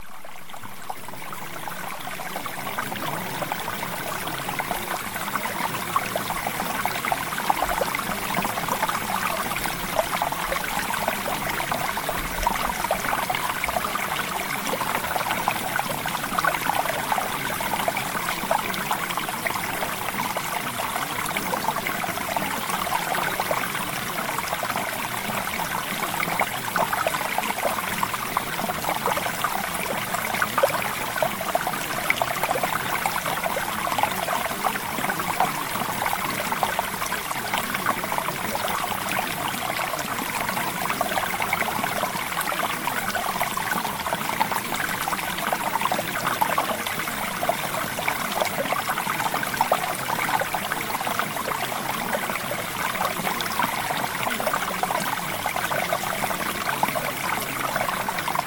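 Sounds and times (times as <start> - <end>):
water: 0.0 - 58.4.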